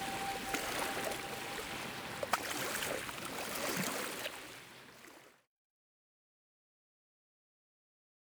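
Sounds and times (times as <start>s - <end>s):
relaxing yoga meditation music: 0.0s - 4.0s
ocean waves: 0.0s - 5.3s.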